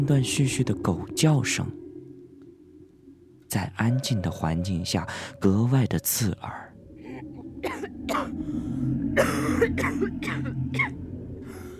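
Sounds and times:
speech: 0.0s - 1.8s, 3.5s - 6.7s, 9.2s - 10.5s
person coughing: 7.6s - 8.4s, 9.2s - 10.9s.

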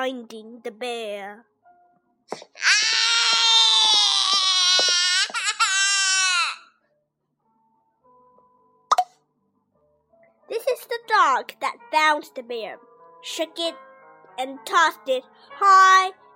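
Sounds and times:
speech: 0.0s - 1.5s, 2.3s - 2.9s, 10.5s - 16.2s
baby crying: 2.3s - 6.8s.

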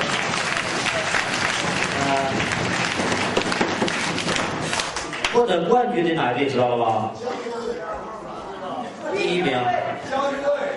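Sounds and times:
audience applause: 0.0s - 5.4s
speech: 5.4s - 7.6s, 9.1s - 10.7s.

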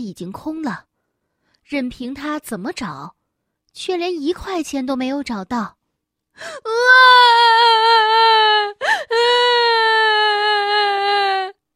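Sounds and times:
speech: 0.0s - 0.9s, 1.7s - 3.2s, 3.8s - 5.8s, 6.4s - 9.7s
voice imitating a little kangaroo crying loudly: 6.7s - 11.5s.

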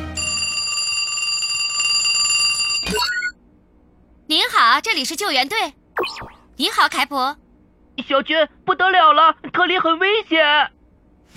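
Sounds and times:
phone ringing with metallic bell-like trill: 0.0s - 3.4s
speech: 4.8s - 7.4s, 8.0s - 10.7s.

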